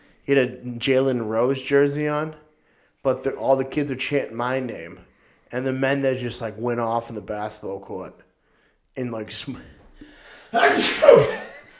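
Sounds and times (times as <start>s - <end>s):
speech: 0.2s - 2.4s, 3.0s - 8.3s, 9.0s - 9.8s, 10.5s - 11.4s
sneeze: 10.6s - 11.6s.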